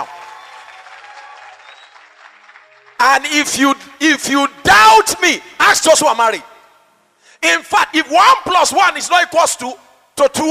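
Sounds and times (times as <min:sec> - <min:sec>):
audience clapping: 0:00.0 - 0:03.4
speech: 0:03.0 - 0:06.5, 0:07.4 - 0:10.4.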